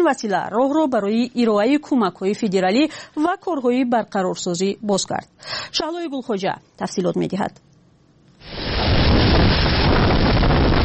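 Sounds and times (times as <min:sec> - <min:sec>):
speech: 0:00.0 - 0:07.7
storm wind on surveillance camera: 0:08.4 - 0:10.8.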